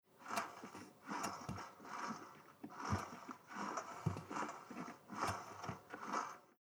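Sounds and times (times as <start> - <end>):
film projector reel turned by knob: 0.1 - 6.5.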